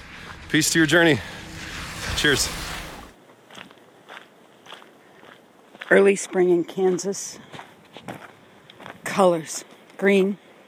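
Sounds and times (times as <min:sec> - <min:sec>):
footsteps crunching on a gritty dirt road: 0:00.0 - 0:01.4, 0:03.2 - 0:10.0
hiss: 0:00.0 - 0:10.6
speech: 0:00.5 - 0:01.4, 0:02.2 - 0:02.6, 0:05.9 - 0:07.5, 0:09.2 - 0:10.4.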